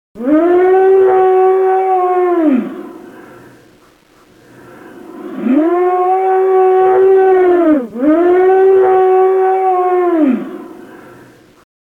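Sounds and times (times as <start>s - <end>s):
low scream: 0.2s - 3.6s, 4.5s - 11.4s.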